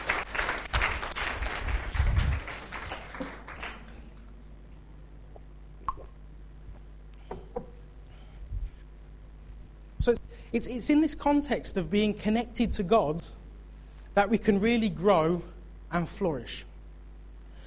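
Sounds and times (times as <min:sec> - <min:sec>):
audience applause: 0:00.0 - 0:04.2
speech: 0:10.0 - 0:13.4, 0:14.2 - 0:16.7.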